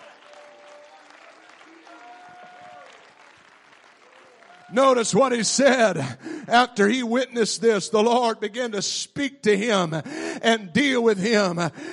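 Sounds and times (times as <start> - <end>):
audience clapping: 0.0 - 5.4
speech: 4.7 - 11.9.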